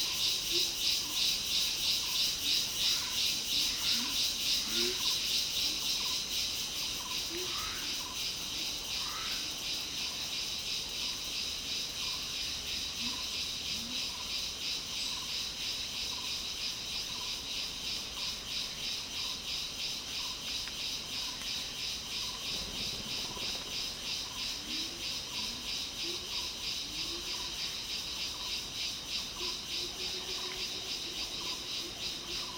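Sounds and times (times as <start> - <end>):
montane rainforest ambience in Taman Negara, Malaysia, in the early evening: 0.0 - 32.5.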